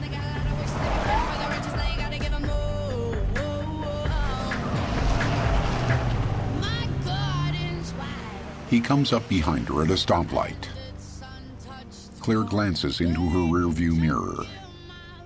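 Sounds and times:
compact car engine revving, speeding out of a parking lot: 0.0 - 11.8
speech: 8.7 - 10.7, 12.2 - 14.6.

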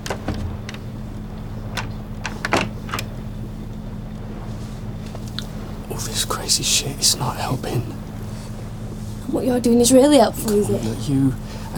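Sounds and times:
door lock clicking shut: 0.0 - 1.0, 1.7 - 3.1
steady low engine-like hum: 0.0 - 11.7
small clicks and knocks: 1.7 - 3.2
speech: 6.0 - 8.0, 9.3 - 11.7.

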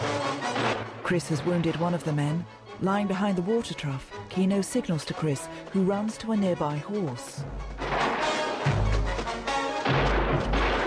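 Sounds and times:
gunfire in a Western film shootout: 0.4 - 2.1, 7.8 - 10.8
speech: 1.1 - 7.7.

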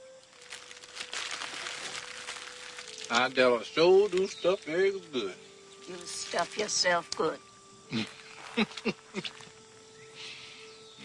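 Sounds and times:
wax paper wrapping crumpled in the hands: 0.0 - 5.0
speech: 3.1 - 9.5.

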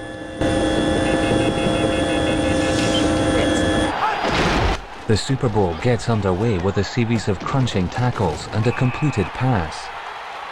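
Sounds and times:
helicopter engine and rotors droning: 0.0 - 3.9
speech: 5.1 - 10.0.

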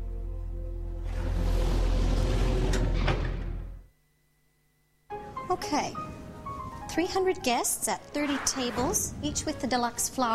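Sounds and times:
low mechanical hum: 0.0 - 10.3
metal elevator doors sliding shut: 1.1 - 3.7
speech: 5.5 - 6.1, 6.9 - 10.3.

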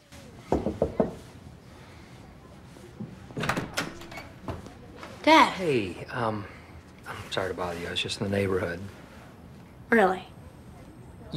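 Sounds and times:
knocking on a college halls door: 0.5 - 1.2
speech: 5.3 - 6.6, 7.3 - 9.0, 9.9 - 10.3.

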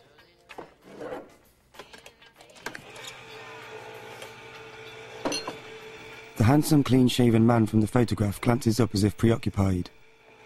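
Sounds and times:
electric can opener opening a tin can: 2.5 - 10.4
speech: 6.5 - 10.0.

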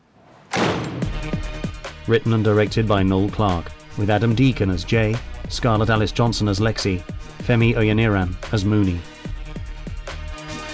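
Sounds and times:
door being closed with a heavy slam: 0.2 - 1.8
speech: 2.1 - 9.1.

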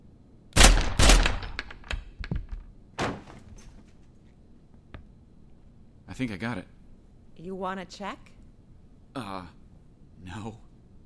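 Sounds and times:
gunshots fired through a door: 0.6 - 3.3
speech: 6.2 - 6.8, 7.4 - 8.4, 9.2 - 9.6, 10.2 - 10.6.

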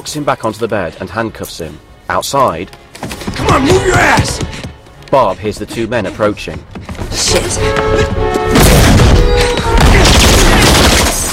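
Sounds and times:
speech: 0.0 - 2.8, 3.5 - 10.0
gunshots exchanged: 8.5 - 11.3.

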